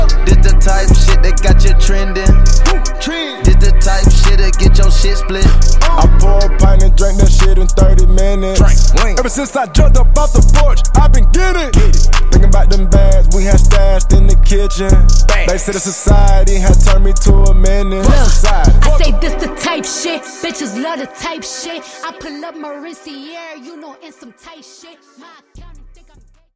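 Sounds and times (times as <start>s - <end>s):
Redrum drum loop: 0.0s - 19.6s.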